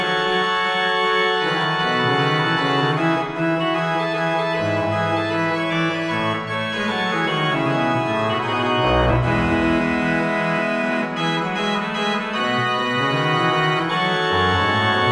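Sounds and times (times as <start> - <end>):
pipe organ playing with trumpet bass stop: 0.0 - 15.1.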